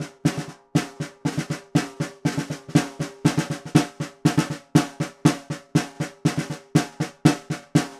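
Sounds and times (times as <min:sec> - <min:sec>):
vintage Ludwig snare drum: 0:00.0 - 0:07.9.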